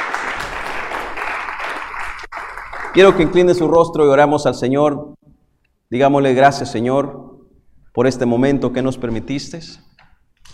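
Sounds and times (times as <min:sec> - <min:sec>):
audience applause in thanksgiving: 0:00.0 - 0:03.5
speech: 0:02.9 - 0:05.2, 0:05.9 - 0:07.3, 0:08.0 - 0:09.9.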